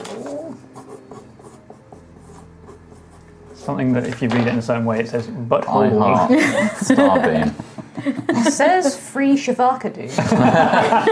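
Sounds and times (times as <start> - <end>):
pen scratching on paper as a note is written: 0.0 - 3.8
speech: 3.7 - 11.1
laughter: 6.2 - 8.8, 10.1 - 11.1.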